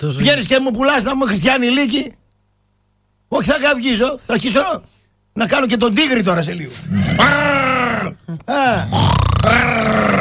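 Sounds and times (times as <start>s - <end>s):
speech: 0.0s - 2.2s, 3.3s - 10.1s
man imitating pig grunts: 6.8s - 10.2s.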